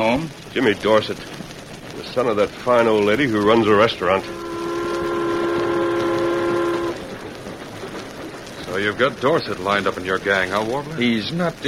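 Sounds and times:
speech: 0.0s - 4.4s, 8.8s - 11.6s
train rumbling: 0.0s - 11.6s
train horn chord: 4.0s - 7.4s.

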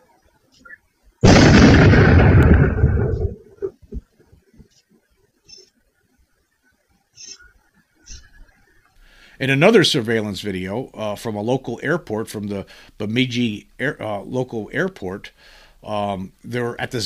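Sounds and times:
loud thundering boom on surveillance video in Minnesota: 1.2s - 3.7s
speech: 9.4s - 17.0s.

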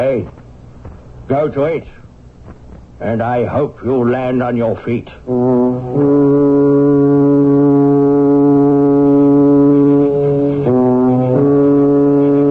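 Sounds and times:
speech: 0.0s - 0.4s, 1.3s - 6.3s
British aeroplane engine drone: 0.0s - 12.4s.

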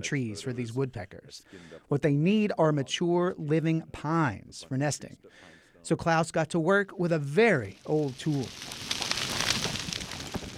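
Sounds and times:
speech: 0.0s - 8.9s
prescribed forest fire burning: 7.2s - 10.5s.

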